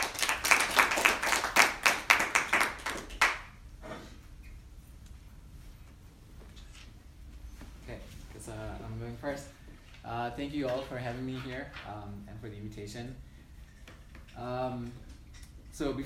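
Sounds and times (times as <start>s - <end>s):
crowd clapping for panelists: 0.0s - 3.6s
speech: 10.4s - 13.3s, 14.4s - 15.1s, 15.8s - 16.0s.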